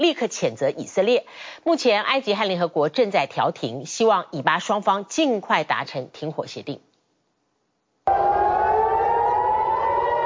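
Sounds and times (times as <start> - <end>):
speech: 0.0 - 6.9
air raid siren in Tel Aviv: 8.1 - 10.2.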